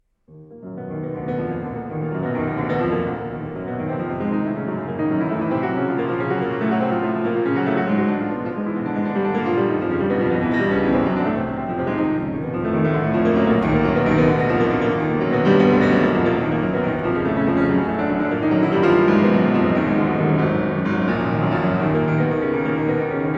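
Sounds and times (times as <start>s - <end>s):
fast classical prelude in E flat minor: 0.4s - 23.3s.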